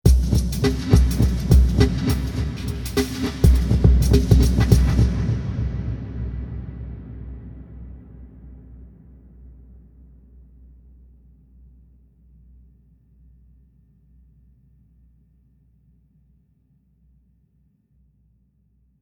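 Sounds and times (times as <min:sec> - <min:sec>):
drums in a cathedral: 0:00.0 - 0:09.2.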